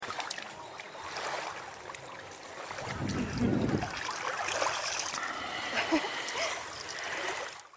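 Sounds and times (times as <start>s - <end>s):
sea: 0.0s - 7.7s.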